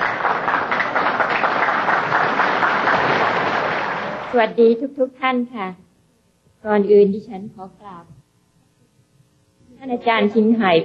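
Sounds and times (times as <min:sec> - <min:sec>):
audience clapping: 0:00.0 - 0:04.5
speech: 0:04.4 - 0:05.8, 0:06.6 - 0:08.2, 0:09.8 - 0:10.8.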